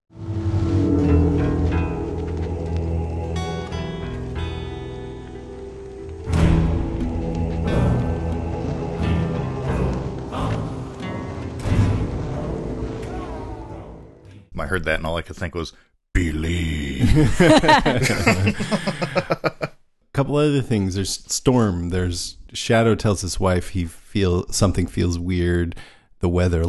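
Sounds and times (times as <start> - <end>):
tribal chanting music from a soundtrack: 0.1 - 14.5
speech: 14.7 - 16.4, 17.2 - 19.3, 20.3 - 26.6
laughter: 17.0 - 19.7.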